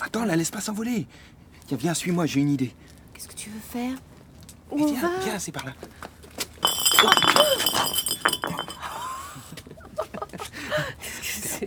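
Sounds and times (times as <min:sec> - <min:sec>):
speech: 0:00.1 - 0:04.1, 0:04.7 - 0:08.9
empty rum bottle clinking: 0:06.6 - 0:09.2.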